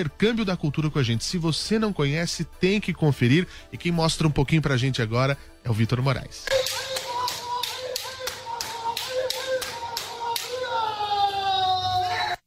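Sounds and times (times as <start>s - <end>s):
speech: 0.0s - 6.9s
kendo martial arts shouts: 6.5s - 12.4s.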